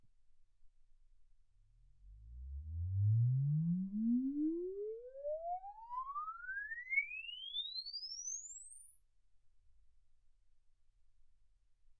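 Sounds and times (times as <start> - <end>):
exponential sine sweep from 10 Hz to 24 kHz: 2.4 - 9.4.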